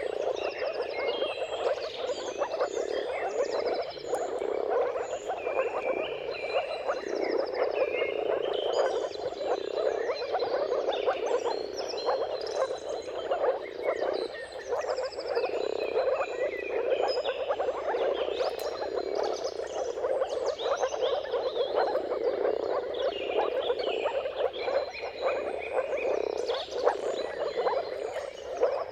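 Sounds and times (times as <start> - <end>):
birdsong with trills and whistles: 0.0 - 28.8
moor frog chorus: 0.0 - 28.8.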